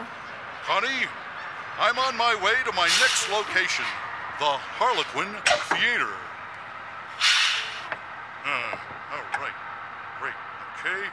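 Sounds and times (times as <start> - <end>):
speech: 0.7 - 1.2, 1.8 - 6.3, 8.4 - 9.6, 10.2 - 11.1
bus air brakes hissing: 2.8 - 3.9, 7.1 - 8.0.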